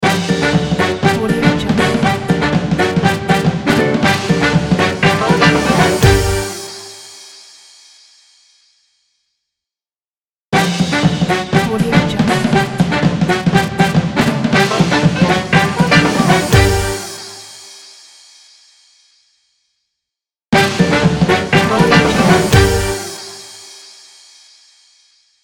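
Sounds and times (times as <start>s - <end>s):
swing music ident: 0.0s - 6.9s, 10.6s - 17.4s, 20.6s - 23.5s.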